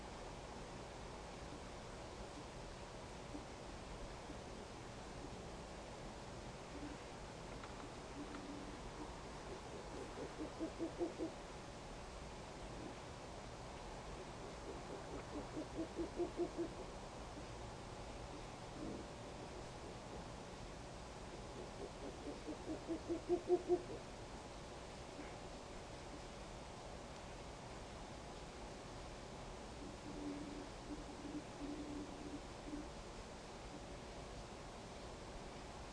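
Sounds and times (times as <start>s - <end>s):
constant hiss: 0.0s - 35.9s
owl hooting: 3.3s - 4.4s, 6.7s - 7.0s, 7.8s - 11.4s, 14.1s - 17.5s, 18.3s - 20.3s, 21.3s - 24.1s, 29.7s - 33.0s.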